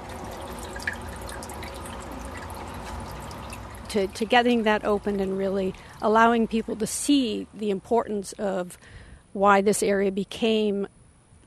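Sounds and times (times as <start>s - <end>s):
faint dripping plinks: 0.0s - 6.4s
spring water running under a cement cap: 0.0s - 7.2s
speech: 3.9s - 11.0s.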